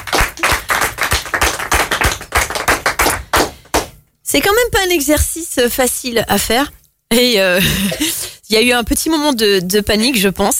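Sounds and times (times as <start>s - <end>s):
applause for a speaker: 0.0s - 4.0s
speech: 4.3s - 10.5s.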